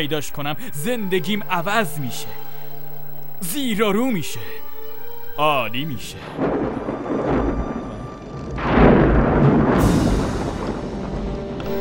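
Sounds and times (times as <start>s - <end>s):
speech: 0.0s - 2.5s, 3.4s - 4.6s, 5.4s - 6.6s
roaring storm: 6.2s - 11.7s.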